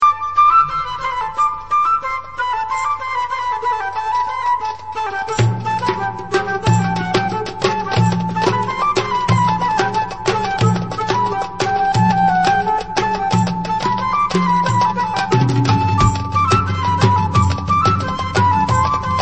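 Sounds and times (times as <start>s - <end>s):
debka instrumental music: 0.0s - 3.7s, 4.7s - 19.2s.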